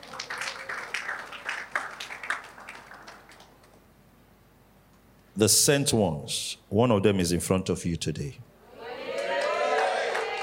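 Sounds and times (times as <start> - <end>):
audience clapping: 0.0 - 3.9, 9.1 - 10.4
speech: 5.4 - 8.5.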